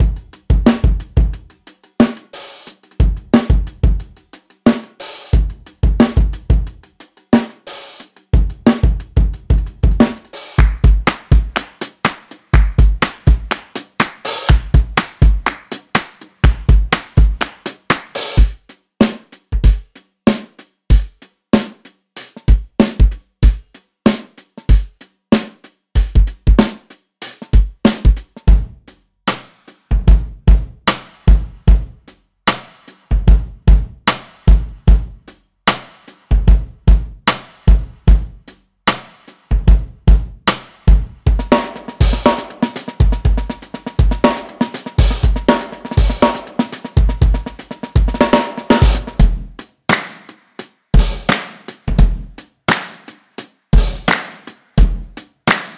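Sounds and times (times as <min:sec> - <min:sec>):
Addictive Drums 2 hip hop and gospel drum kit preset: 0:00.0 - 0:55.7.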